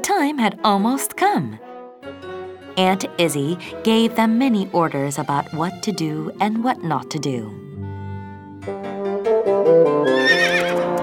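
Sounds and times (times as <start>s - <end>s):
speech: 0.2s - 2.2s, 2.8s - 7.6s
horse whinnying: 10.0s - 10.9s.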